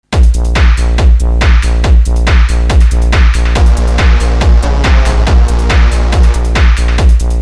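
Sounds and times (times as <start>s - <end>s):
bass: 0.0s - 7.3s.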